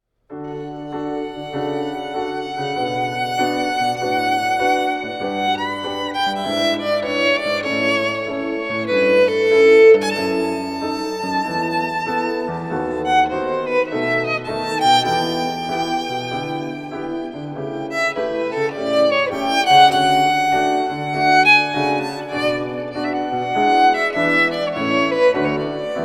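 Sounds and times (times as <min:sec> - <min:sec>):
swing arrangement of baroque piece: 0:00.5 - 0:26.0.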